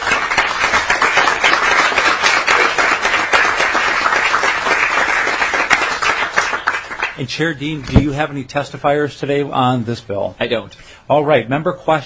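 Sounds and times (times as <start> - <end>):
applause welcoming visiting students: 0.0 - 7.2
speech: 7.2 - 12.0.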